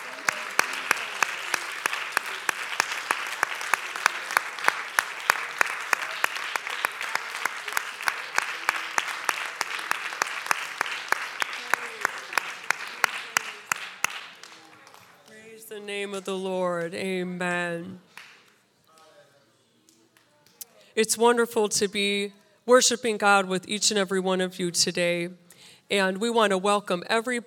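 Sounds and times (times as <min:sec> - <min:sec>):
audience hand clap of praise: 0:00.0 - 0:19.1
speech: 0:15.9 - 0:18.1, 0:21.0 - 0:27.4.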